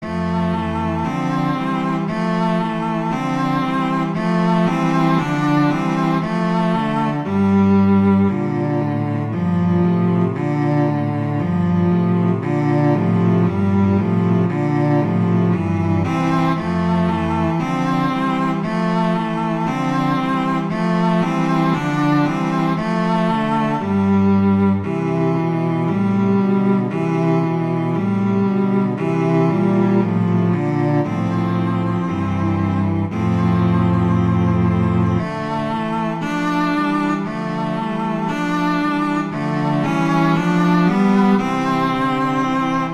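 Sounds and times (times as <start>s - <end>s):
cello playing an etude: 0.0s - 42.9s.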